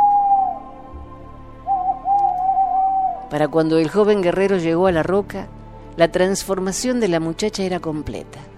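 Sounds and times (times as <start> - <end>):
soft owl hoot: 0.0 - 3.3
speech: 3.3 - 8.5.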